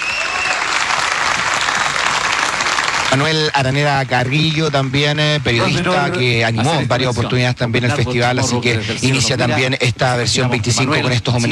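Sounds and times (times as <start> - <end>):
audience applause: 0.0 - 6.3
speech: 3.1 - 11.5.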